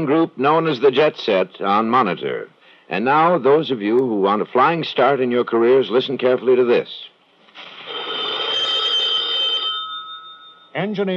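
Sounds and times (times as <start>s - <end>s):
speech: 0.0s - 7.7s, 10.8s - 11.1s
telephone ringing: 7.6s - 10.8s.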